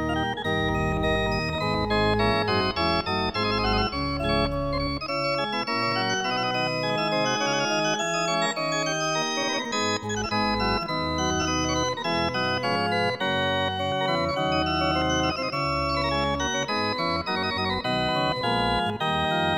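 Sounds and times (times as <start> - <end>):
organ pipe: 0.0 - 19.5.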